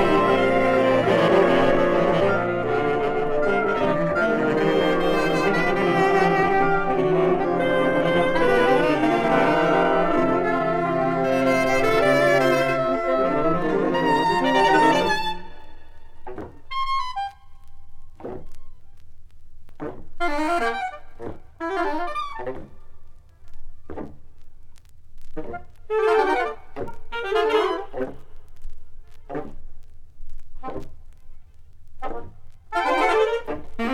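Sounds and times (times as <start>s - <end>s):
saxophone orchestra: 0.0s - 17.4s, 20.2s - 22.6s, 25.4s - 28.3s, 32.1s - 33.9s.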